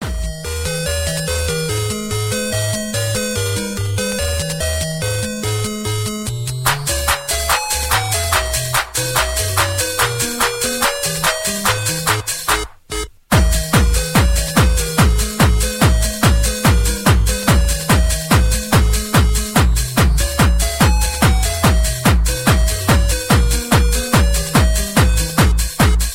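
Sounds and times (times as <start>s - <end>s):
video game ringtone: 0.1s - 26.0s.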